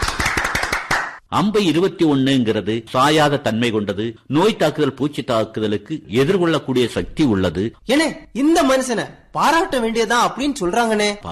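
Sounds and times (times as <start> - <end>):
group clapping: 0.0 - 1.2
speech: 1.3 - 11.2.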